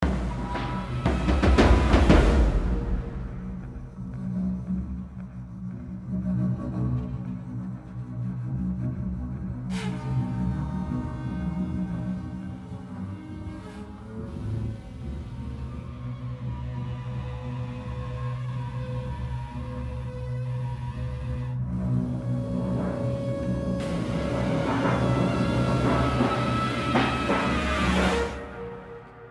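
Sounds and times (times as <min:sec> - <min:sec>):
intense percussion: 0:00.0 - 0:29.2
battle horns: 0:23.8 - 0:29.2.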